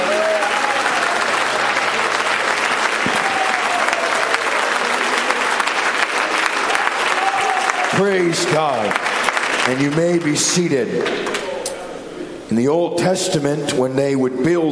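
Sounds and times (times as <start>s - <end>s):
audience clapping hands: 0.0s - 11.5s
speech: 8.0s - 11.4s, 12.5s - 14.7s.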